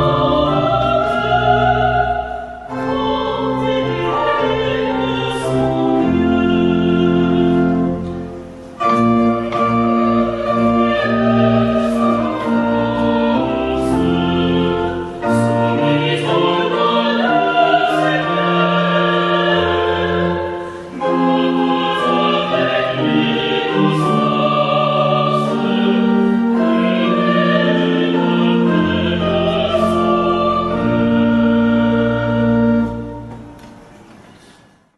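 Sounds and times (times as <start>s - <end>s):
pipe organ playing: 0.0s - 34.2s.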